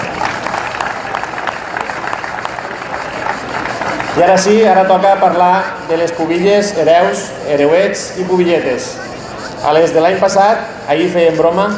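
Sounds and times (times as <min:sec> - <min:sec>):
audience applause: 0:00.0 - 0:04.6
speech: 0:04.2 - 0:11.7.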